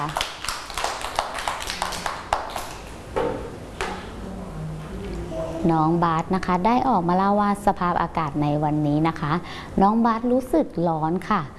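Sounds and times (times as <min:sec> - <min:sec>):
speech: 0:00.0 - 0:00.2, 0:05.6 - 0:11.5
children clapping: 0:00.0 - 0:03.0.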